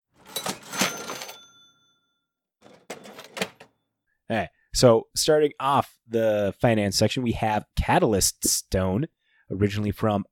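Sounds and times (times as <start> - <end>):
cash register cha-ching sound effect: 0.1 - 2.0, 2.6 - 3.8
speech: 4.3 - 10.3.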